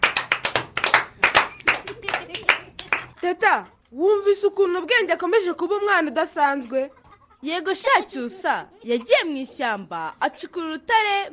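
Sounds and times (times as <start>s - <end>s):
small group clapping on a children's radio show: 0.0s - 3.3s
laughter: 1.2s - 11.3s
speech: 3.2s - 11.3s.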